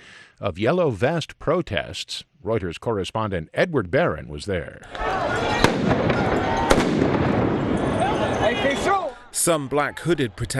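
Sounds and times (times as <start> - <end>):
speech: 0.4 - 6.3, 9.4 - 10.5
stun grenades exploding at street protest: 5.6 - 8.5.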